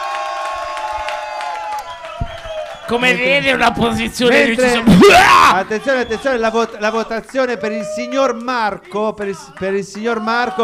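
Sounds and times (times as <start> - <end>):
studio audience jury applause and cheering: 0.0 - 10.6
speech: 2.9 - 10.6.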